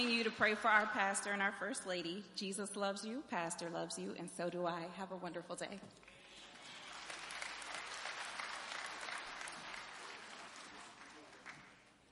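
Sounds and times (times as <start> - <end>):
speech: 0.0 - 6.1
hand clapping: 6.0 - 12.1.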